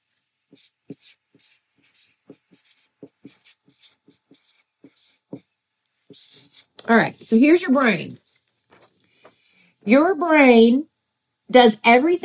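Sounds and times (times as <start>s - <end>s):
speech: 0.5s - 1.2s, 6.9s - 8.2s, 9.9s - 10.9s, 11.5s - 12.2s
marker drawing on paper: 0.5s - 5.5s, 6.1s - 8.3s.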